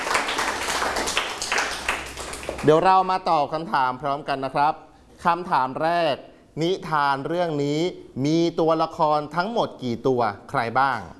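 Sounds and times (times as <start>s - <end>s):
students clapping in a classroom: 0.0s - 2.8s
speech: 2.6s - 11.1s.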